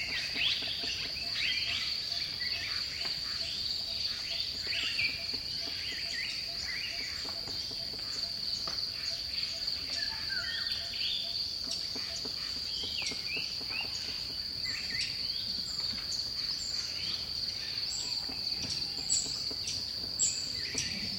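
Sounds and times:
birds singing in dipterocarp forest: 0.0s - 21.1s.

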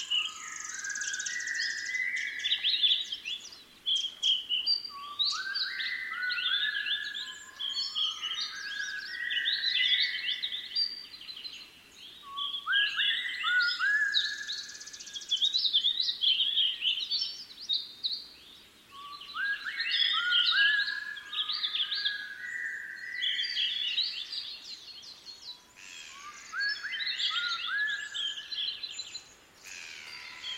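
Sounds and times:
birds in alpine habitat at 2500m: 0.0s - 30.5s.

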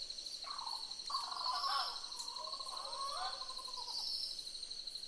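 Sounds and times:
several boobook owls hooting in soft paired notes: 0.4s - 4.1s.

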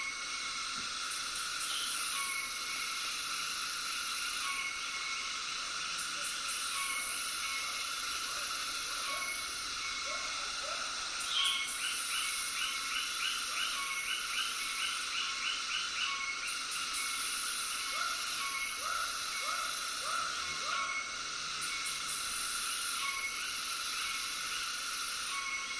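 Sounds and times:
frogs calling in a tropical soundscape: 0.0s - 25.7s.

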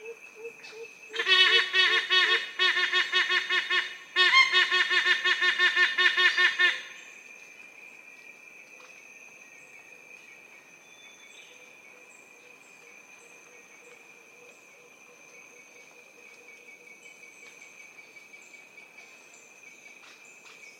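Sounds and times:
yellow-casqued hornbill honking calls: 1.1s - 7.0s.

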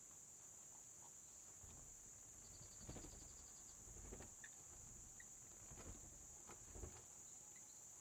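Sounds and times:
bats flapping wings in a cave: 1.6s - 7.1s.

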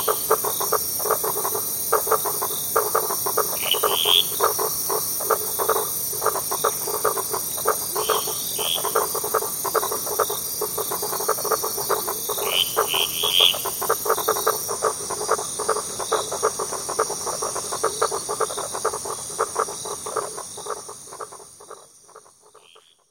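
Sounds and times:
frogs croaking: 0.0s - 23.0s.

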